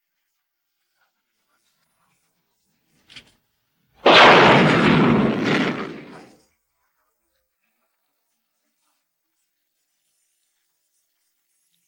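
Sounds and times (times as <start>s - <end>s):
explosion: 4.0s - 6.3s.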